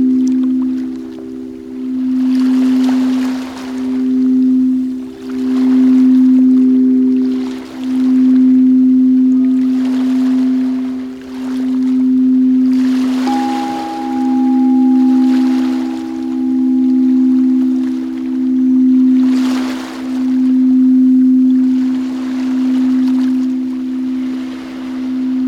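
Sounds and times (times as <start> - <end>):
singing bowls ringing: 0.0 - 25.4
soft rushing water sound: 0.0 - 25.4.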